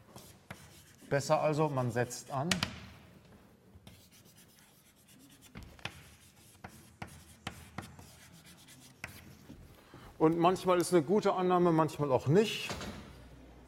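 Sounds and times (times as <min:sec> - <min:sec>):
handwriting scratching on a board during a maths lecture: 0:00.1 - 0:01.1, 0:03.9 - 0:09.6
speech: 0:01.1 - 0:02.8, 0:10.2 - 0:12.8.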